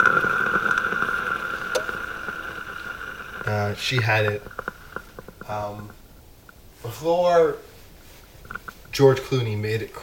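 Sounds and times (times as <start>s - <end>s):
Nespresso espresso machine pump running: 0.0s - 5.7s
speech: 3.5s - 4.6s, 5.5s - 6.0s, 6.8s - 7.7s, 8.9s - 10.0s.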